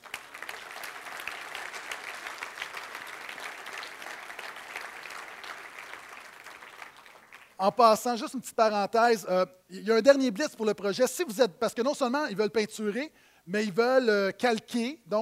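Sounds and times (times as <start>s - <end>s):
crowd applause: 0.0s - 7.6s
speech: 7.6s - 15.2s.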